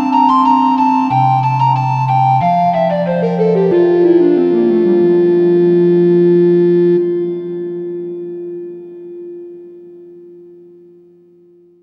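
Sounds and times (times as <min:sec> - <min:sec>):
organ playing a hymn: 0:00.0 - 0:08.6.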